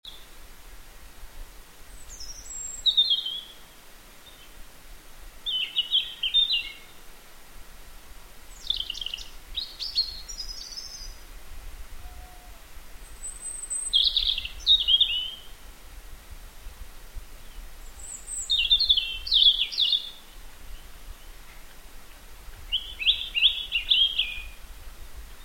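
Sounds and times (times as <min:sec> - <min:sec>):
faint hiss: 0:00.1 - 0:25.4
European robin singing: 0:01.9 - 0:04.5, 0:05.4 - 0:07.0, 0:08.5 - 0:11.2, 0:12.0 - 0:15.6, 0:17.4 - 0:21.8, 0:22.5 - 0:24.6.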